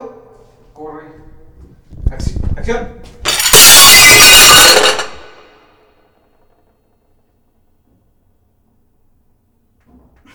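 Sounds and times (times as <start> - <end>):
dishes crashing and breaking: 3.2 - 5.6.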